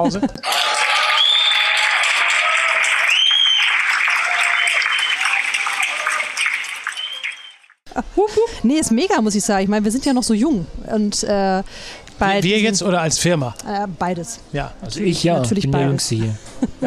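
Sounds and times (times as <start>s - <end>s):
speech: 0.0s - 0.8s, 8.0s - 16.8s
laughter: 0.0s - 1.2s, 16.5s - 16.8s
applause sound effect with clapping and cheering: 0.4s - 7.8s.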